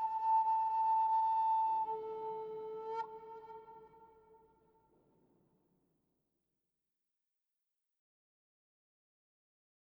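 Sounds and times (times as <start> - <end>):
Native American flutes: 0.0 - 4.6.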